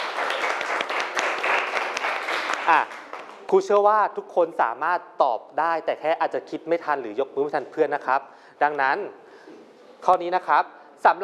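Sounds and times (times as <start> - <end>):
classroom clapping: 0.0 - 3.5
speech: 2.7 - 9.2, 10.0 - 11.2.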